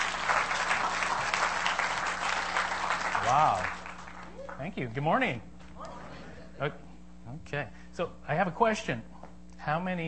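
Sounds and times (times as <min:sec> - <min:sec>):
audience applause at a morning service: 0:00.0 - 0:04.6
speech: 0:03.3 - 0:03.8, 0:04.6 - 0:05.5, 0:06.6 - 0:10.0.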